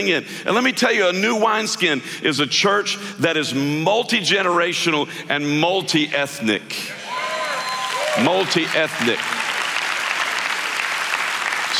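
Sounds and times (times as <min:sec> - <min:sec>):
speech: 0:00.0 - 0:07.0, 0:08.2 - 0:09.3
audience applause: 0:07.1 - 0:11.7.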